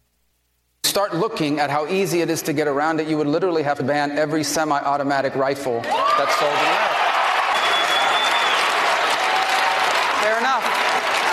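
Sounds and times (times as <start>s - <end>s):
speech: 1.0s - 6.9s, 10.3s - 11.1s
thousands of people cheering: 5.8s - 11.3s.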